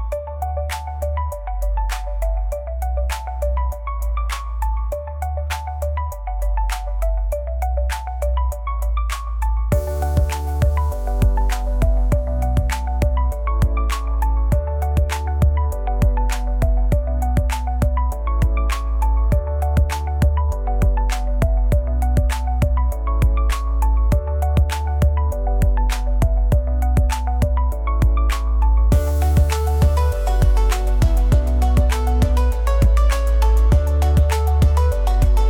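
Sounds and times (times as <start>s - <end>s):
digital disco music: 0.2s - 35.4s.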